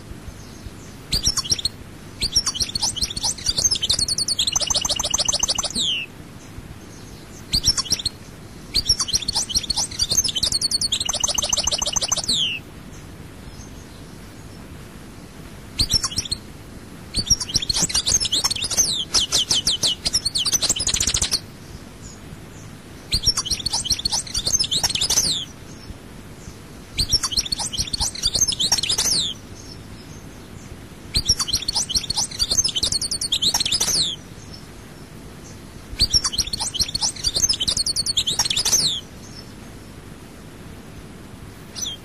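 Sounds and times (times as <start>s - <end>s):
European goldfinch song: 0.2s - 16.5s, 17.1s - 40.0s, 41.5s - 42.0s.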